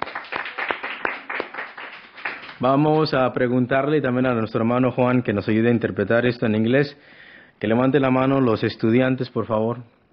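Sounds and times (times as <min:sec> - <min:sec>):
audience clapping hands: 0:00.0 - 0:02.8
speech: 0:02.6 - 0:10.0.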